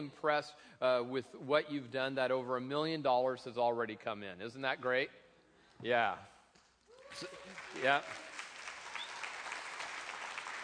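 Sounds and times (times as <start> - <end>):
speech: 0.0 - 5.2, 5.8 - 6.3, 7.1 - 8.2
church congregation clapping after a fund-raising pledge announcement: 6.9 - 10.6.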